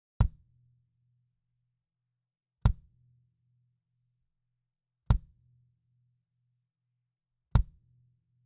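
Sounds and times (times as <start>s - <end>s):
kick drum: 0.2s - 0.5s, 2.6s - 3.0s, 5.1s - 5.4s, 7.6s - 7.9s.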